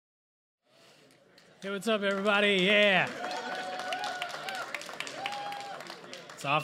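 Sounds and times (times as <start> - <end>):
audience clapping: 1.0 - 6.6
speech: 1.6 - 3.4, 6.4 - 6.6
voices and whoops or cheers: 1.6 - 6.6.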